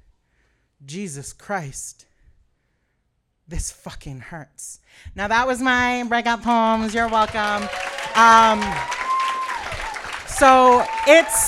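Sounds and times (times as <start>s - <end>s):
speech: 0.8s - 2.1s, 3.5s - 9.0s, 10.4s - 11.4s
audience clapping: 6.1s - 11.4s
people whooping and cheering: 7.3s - 11.4s.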